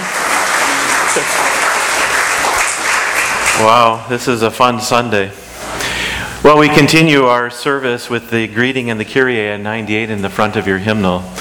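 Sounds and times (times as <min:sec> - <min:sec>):
crowd applause: 0:00.0 - 0:04.0
speech: 0:03.6 - 0:05.4, 0:06.4 - 0:11.3.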